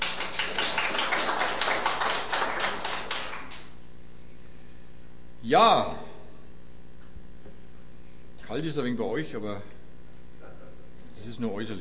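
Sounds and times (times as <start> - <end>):
audience applause: 0.0 - 3.8
speech: 5.5 - 6.0, 8.5 - 9.8, 11.2 - 11.7.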